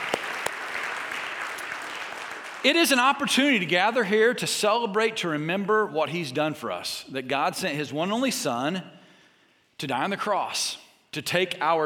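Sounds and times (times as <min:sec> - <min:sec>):
audience applause: 0:00.0 - 0:02.7
speech: 0:02.6 - 0:09.0, 0:09.8 - 0:11.8.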